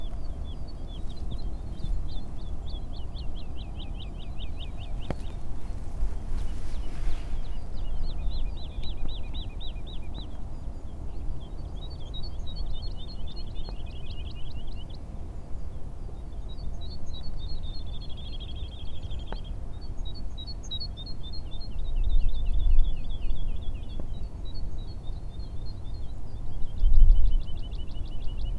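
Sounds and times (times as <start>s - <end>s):
woodlark singing: 0.0s - 28.5s.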